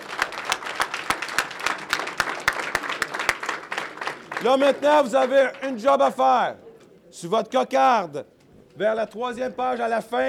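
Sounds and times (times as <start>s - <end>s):
audience applause: 0.0s - 6.0s
speech: 4.4s - 10.2s.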